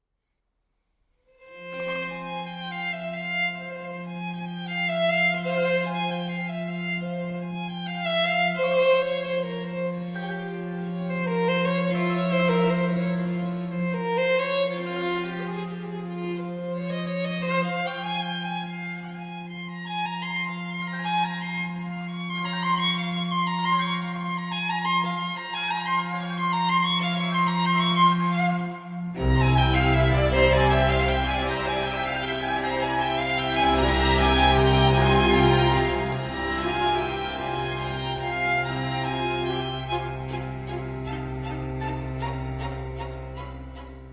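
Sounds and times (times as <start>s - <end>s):
violin concerto in F minor, allegro: 1.4s - 44.1s.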